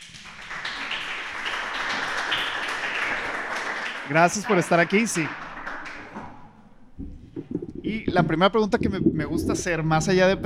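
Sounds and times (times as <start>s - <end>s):
audience applause: 0.0s - 6.4s
speech: 4.1s - 5.4s, 8.1s - 10.4s.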